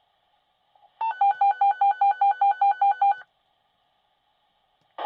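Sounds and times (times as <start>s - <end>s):
fire department dispatch pager alert: 1.0s - 3.2s.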